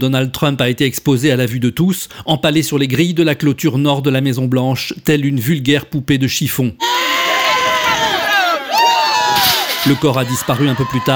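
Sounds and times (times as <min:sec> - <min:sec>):
speech: 0:00.0 - 0:07.1, 0:09.8 - 0:11.1
crowd cheering and shouting in joy: 0:06.8 - 0:11.1.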